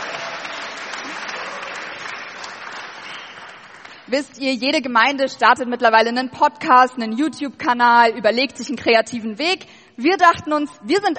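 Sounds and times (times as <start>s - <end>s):
audience applause: 0.0s - 4.1s
speech: 4.1s - 11.1s.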